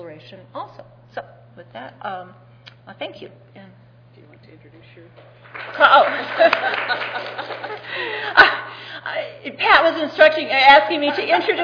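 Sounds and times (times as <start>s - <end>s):
speech: 0.2s - 3.8s, 4.4s - 11.6s
hands clapping: 5.2s - 7.9s
laughter: 5.5s - 8.8s.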